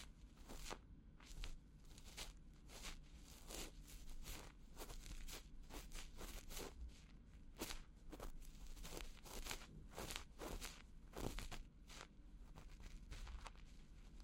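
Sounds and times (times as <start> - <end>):
fingers rubbing and poking an ear in ear massage: 0.0 - 14.2.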